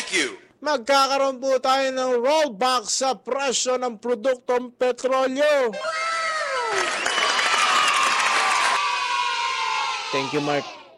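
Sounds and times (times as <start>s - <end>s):
speech: 0.1s - 7.0s, 10.1s - 10.8s
crowd cheering and shouting: 5.7s - 10.9s
crowd clapping: 6.6s - 9.0s.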